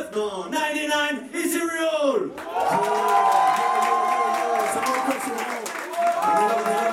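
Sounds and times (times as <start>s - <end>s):
speech: 0.1s - 3.3s
audience cheering: 2.4s - 6.9s.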